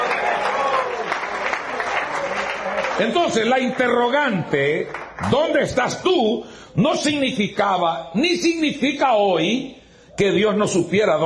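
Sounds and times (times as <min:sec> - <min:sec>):
audience applause: 0:00.0 - 0:04.0
speech: 0:03.0 - 0:11.2.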